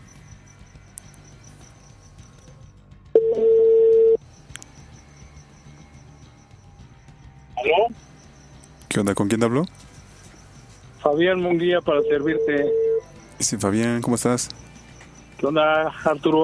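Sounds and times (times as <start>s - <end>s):
telephone tone as a call is being dialed: 3.2s - 4.2s, 11.9s - 13.1s
speech: 9.0s - 9.9s, 11.1s - 12.8s, 13.4s - 14.7s, 15.4s - 16.4s.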